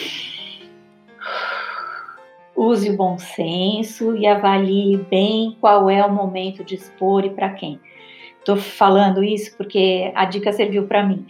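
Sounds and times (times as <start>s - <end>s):
deliberate deep breath: 0.0s - 2.2s, 7.9s - 8.4s
speech: 2.6s - 11.2s.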